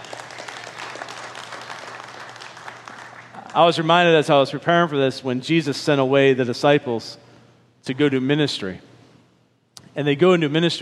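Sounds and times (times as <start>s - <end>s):
audience clapping: 0.0s - 4.1s
speech: 3.6s - 7.2s, 7.8s - 8.9s, 10.0s - 10.8s.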